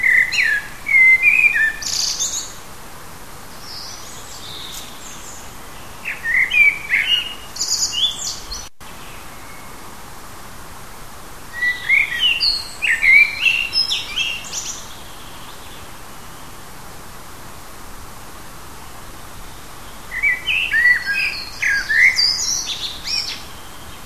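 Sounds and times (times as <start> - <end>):
native hedgerow birds chirping and twittering in June: 0.0 - 2.6, 3.6 - 9.8, 11.6 - 16.6, 18.8 - 24.0.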